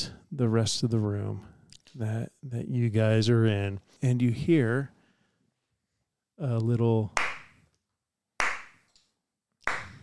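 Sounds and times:
speech: 0.4 - 5.0, 6.4 - 7.2
slow clap: 7.2 - 7.7, 8.4 - 10.0.

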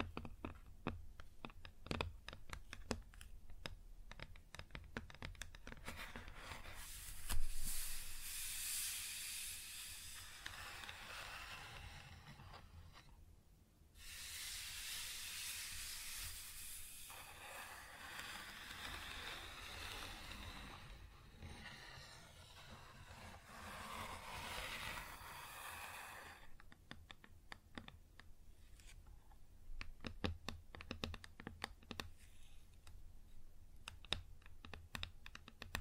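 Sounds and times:
fingers tapping on a wood surface: 0.0 - 5.8, 26.6 - 28.3, 29.8 - 32.1, 33.8 - 35.8
hissing scratch across wood grain: 5.9 - 13.1, 14.0 - 26.5.

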